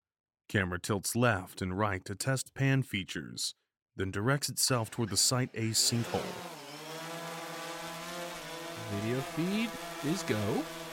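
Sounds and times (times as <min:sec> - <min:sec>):
speech: 0:00.5 - 0:06.6, 0:08.9 - 0:10.8
helicopter rotor blades starting up: 0:05.8 - 0:10.9.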